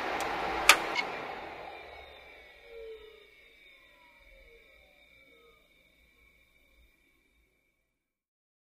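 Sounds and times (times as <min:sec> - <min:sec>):
computer turning on: 0:00.0 - 0:02.4
computer fan noise: 0:00.0 - 0:03.2.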